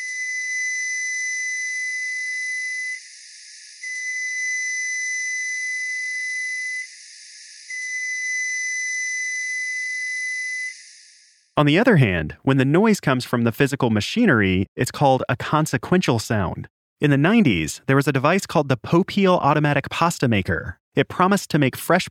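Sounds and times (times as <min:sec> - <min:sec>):
newer model Frigidaire microwave long beeps: 0:00.0 - 0:03.0, 0:03.8 - 0:06.9, 0:07.7 - 0:10.8
speech: 0:11.6 - 0:22.0.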